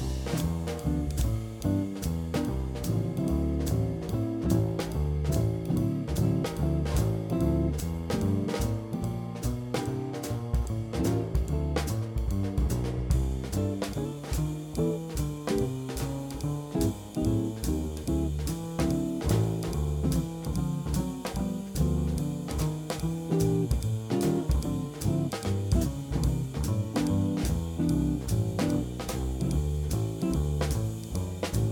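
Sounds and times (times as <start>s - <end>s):
piano accompaniment: 0.0s - 31.7s.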